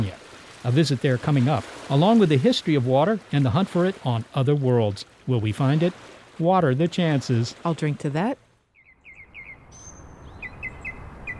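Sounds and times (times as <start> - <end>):
speech: 0.1 - 8.4
birds chirping in a wetland: 8.7 - 11.3.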